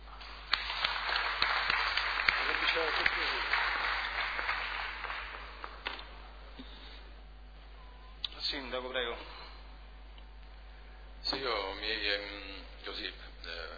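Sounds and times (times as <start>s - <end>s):
audience at a civic ceremony applauding a Ladispoli youth football squad: 0.0s - 6.2s
speech: 11.3s - 13.7s.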